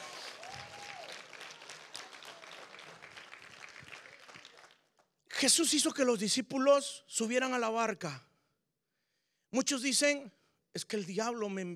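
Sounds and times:
audience applauding: 0.0 - 5.1
speech: 5.4 - 8.3, 9.5 - 11.7.

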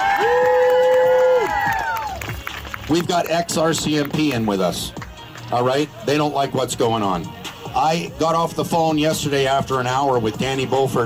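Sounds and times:
crowd cheering: 0.0 - 3.4
crowd applause: 0.0 - 5.7
speech: 2.9 - 11.0.

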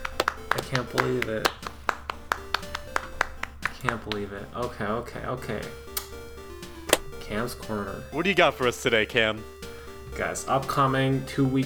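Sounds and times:
scattered audience hand claps: 0.0 - 4.5
speech: 0.7 - 1.7, 3.8 - 5.9, 7.3 - 11.6.

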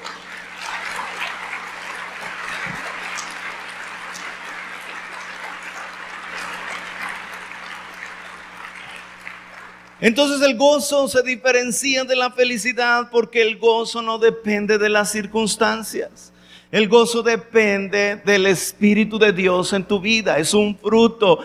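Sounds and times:
audience applause: 0.0 - 10.0
speech: 10.0 - 21.4.

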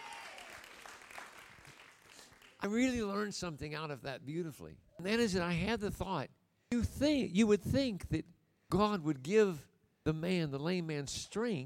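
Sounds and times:
audience hand clapping: 0.0 - 3.3
speech: 2.6 - 11.6.

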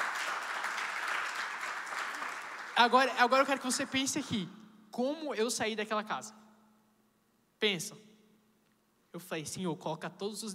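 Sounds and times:
church congregation applauding: 0.0 - 4.2
speech: 2.8 - 6.4, 7.6 - 8.1, 9.2 - 10.5.

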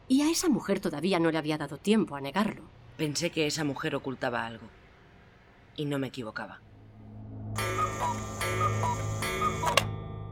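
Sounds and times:
speech: 0.1 - 4.8, 5.8 - 6.7, 7.6 - 8.2
cuckoo clock ticking: 7.6 - 10.0.

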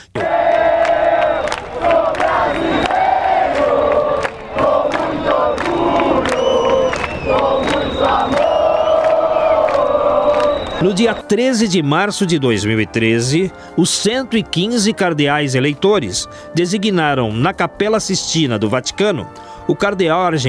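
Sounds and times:
crowd chanting a war cry in the street: 0.1 - 12.4
speech: 10.8 - 20.4.

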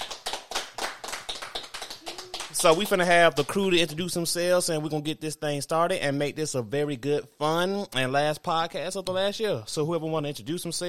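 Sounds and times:
hand clapping: 0.0 - 3.8
speech: 2.6 - 10.8.

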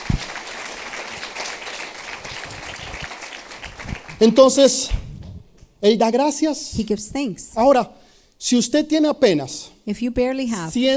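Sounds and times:
audience applause: 0.0 - 4.4
speech: 4.2 - 5.0, 5.8 - 10.9.

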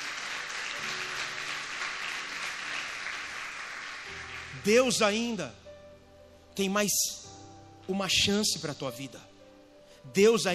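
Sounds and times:
round of applause: 0.0 - 4.6
speech: 4.5 - 5.6, 6.6 - 7.3, 7.9 - 9.3, 10.0 - 10.5.

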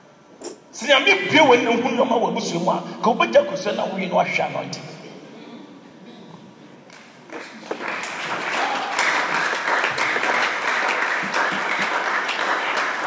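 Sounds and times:
speech: 0.8 - 4.9
congregation clapping during a Sunday church service: 6.9 - 13.0.

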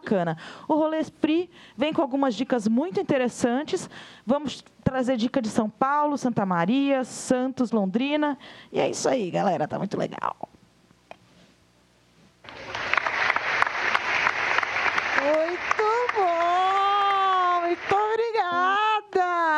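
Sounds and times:
speech: 0.0 - 10.6
loud dense applause: 12.4 - 18.5
sustained high-pitched cheering voices: 12.5 - 18.0.

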